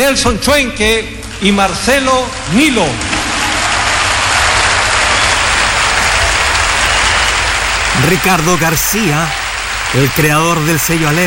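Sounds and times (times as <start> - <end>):
speech: 0.0 - 3.1, 8.0 - 11.2
audience applause: 2.4 - 11.2.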